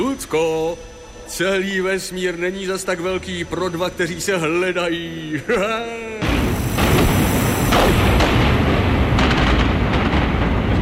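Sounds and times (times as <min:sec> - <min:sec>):
speech: 0:00.2 - 0:06.3
spaceship exploding and breaking apart: 0:06.2 - 0:10.8
crackling debris: 0:06.4 - 0:10.8.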